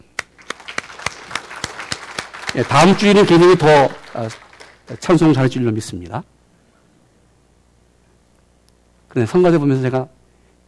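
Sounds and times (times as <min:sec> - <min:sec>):
audience applause: 0:00.2 - 0:05.4
speech: 0:02.5 - 0:06.3, 0:09.2 - 0:10.6.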